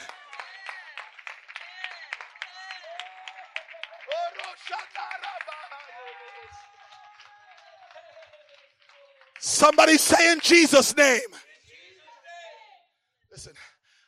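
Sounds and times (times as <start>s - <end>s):
audience clapping: 0.0s - 11.4s
speech: 4.6s - 5.4s, 9.5s - 11.4s.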